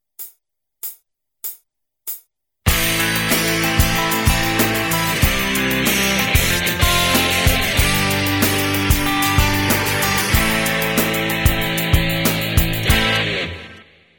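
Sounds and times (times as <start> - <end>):
music jam: 2.7 - 14.0.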